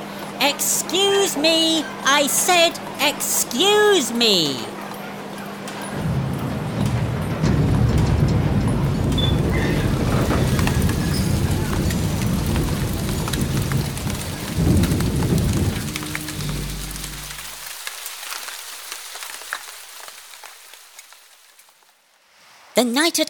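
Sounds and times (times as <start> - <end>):
speech: 0.4 - 4.8, 22.8 - 23.2
deep rumbling thunder: 6.0 - 17.7
heavy rainstorm outdoors at night: 6.0 - 22.0.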